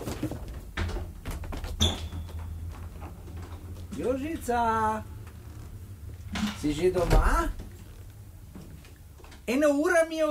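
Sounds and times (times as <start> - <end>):
wardrobe door closing: 0.6 - 9.4
speech: 4.0 - 5.1, 6.5 - 7.6, 9.5 - 10.2.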